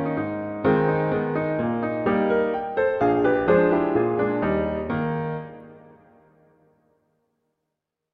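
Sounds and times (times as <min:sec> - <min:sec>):
waltz music in E-flat major: 0:00.0 - 0:06.2.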